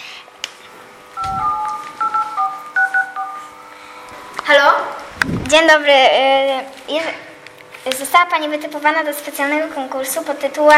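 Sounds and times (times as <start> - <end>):
two-tone touch-tone beeps of a phone number being dialed: 1.2 - 3.5
speech: 5.5 - 7.2, 7.8 - 10.7.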